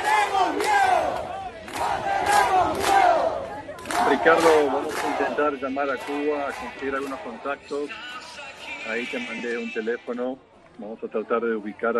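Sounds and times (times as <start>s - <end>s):
large crowd of protesters shouting in street: 0.0s - 9.3s
speech: 4.2s - 8.2s, 8.8s - 11.9s.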